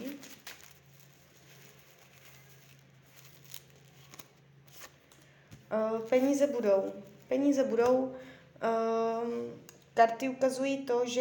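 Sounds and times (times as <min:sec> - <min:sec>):
cards being drawn and shuffled: 0:00.0 - 0:07.4
speech: 0:05.7 - 0:11.2.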